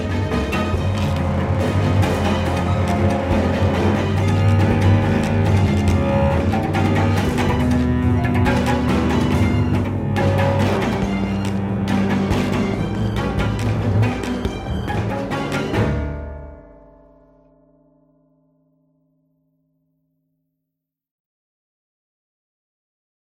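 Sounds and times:
fight music loop: 0.0 - 16.2.

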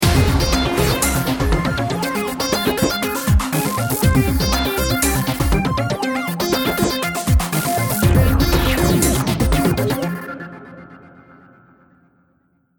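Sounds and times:
ten second bomb timer countdown: 0.0 - 6.0, 7.3 - 10.0.

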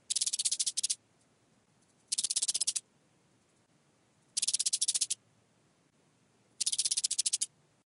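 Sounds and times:
desert cricket chirping: 0.0 - 1.0, 2.1 - 2.8, 4.4 - 5.2, 6.6 - 7.5.

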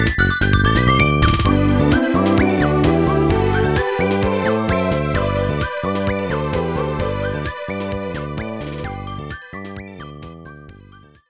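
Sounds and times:
menu background music: 1.0 - 9.6.

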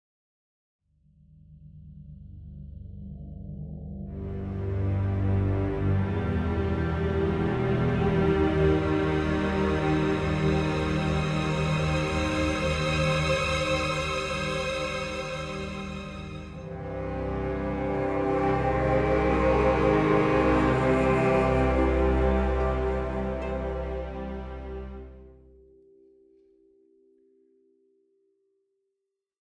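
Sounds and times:
string instrument: 4.1 - 25.7.

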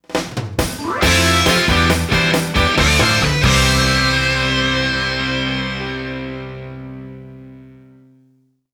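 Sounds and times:
boss battle victory music: 0.2 - 7.2.

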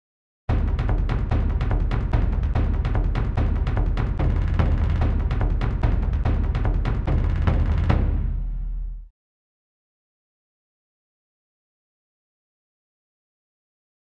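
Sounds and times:
drumroll: 0.5 - 9.0.

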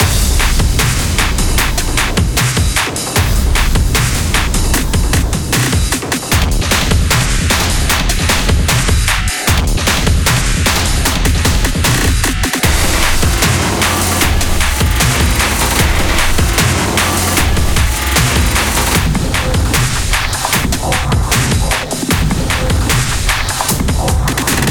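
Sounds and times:
battle music: 0.0 - 24.7.

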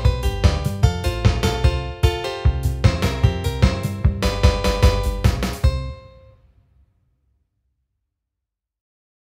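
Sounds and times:
party blues music: 0.0 - 5.9.

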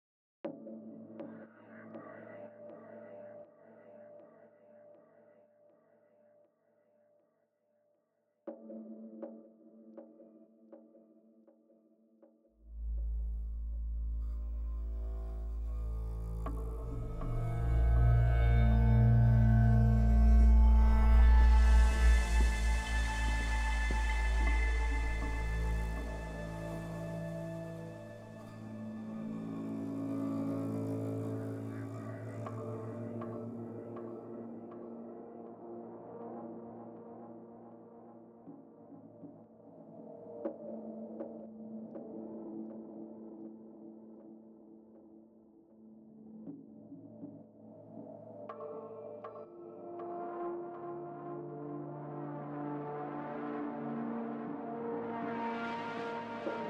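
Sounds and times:
synths and pads: 12.8 - 38.9, 48.5 - 56.6.

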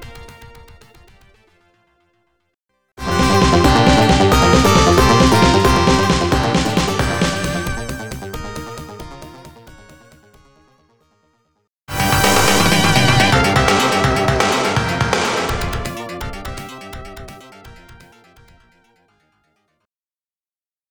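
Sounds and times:
FM sound source rhythm: 3.0 - 8.9, 12.0 - 18.0.

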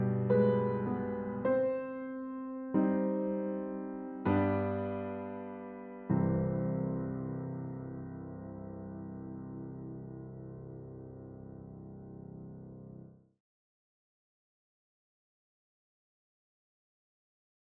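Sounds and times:
piano interlude: 0.0 - 13.4.

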